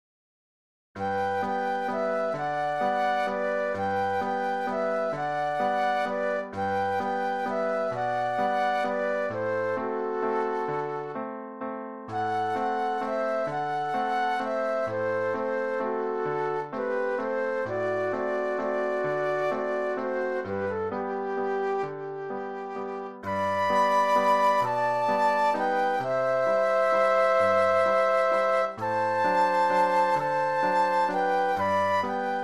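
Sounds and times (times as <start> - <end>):
flute duet: 1.0 - 11.3, 12.1 - 32.4
piano: 1.0 - 32.4.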